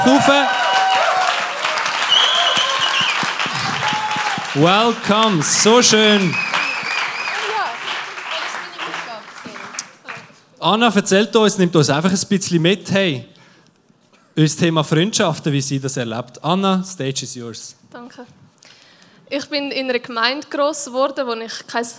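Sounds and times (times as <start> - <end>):
audience applause: 0.0 - 10.4
speech: 0.1 - 0.6, 4.6 - 6.5, 10.6 - 13.3, 14.4 - 18.4, 19.3 - 21.9.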